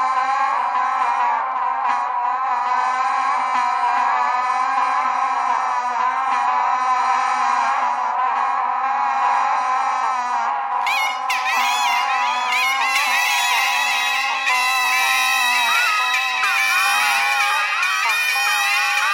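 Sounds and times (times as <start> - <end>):
geese honking: 0.0 - 19.1
bagpipe playing: 10.8 - 19.1.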